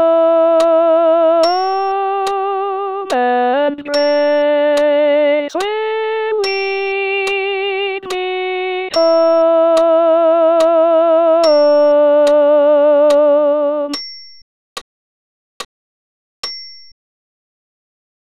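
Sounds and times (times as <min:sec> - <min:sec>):
alto hymn melody: 0:00.0 - 0:13.9.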